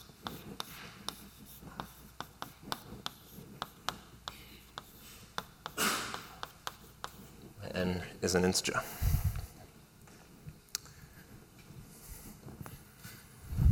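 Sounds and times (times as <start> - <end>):
chalk tapping and scratching on board during a mathematics lecture: 0.0 - 7.5
speech: 7.9 - 9.0.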